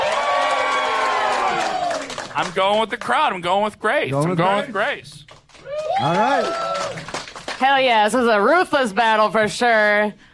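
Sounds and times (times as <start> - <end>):
audience cheering: 0.0 - 2.4, 5.6 - 7.2
speech: 2.4 - 5.3, 6.0 - 6.7, 7.6 - 10.3.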